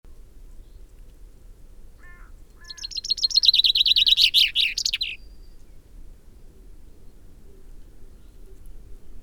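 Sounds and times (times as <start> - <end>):
common chaffinch singing: 2.6 - 5.4.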